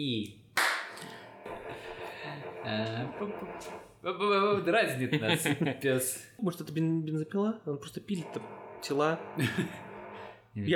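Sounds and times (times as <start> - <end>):
speech: 0.0 - 0.4, 2.6 - 9.9, 10.6 - 10.7
hand clap for sync: 0.6 - 1.1
laughter: 5.0 - 5.9, 9.1 - 10.3.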